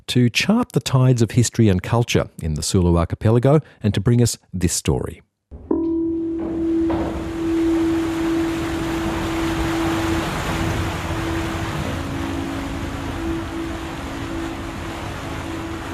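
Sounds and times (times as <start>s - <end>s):
speech: 0.1s - 5.3s
ferry engine drone riding the sea swell out of Zamboanga City: 5.6s - 15.9s
wind: 5.6s - 15.9s
rushing sea water: 5.9s - 15.9s.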